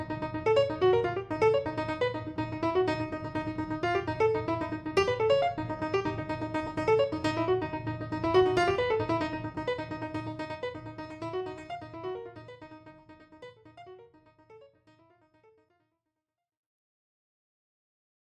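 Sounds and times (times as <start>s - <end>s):
solo piano: 0.0s - 14.0s.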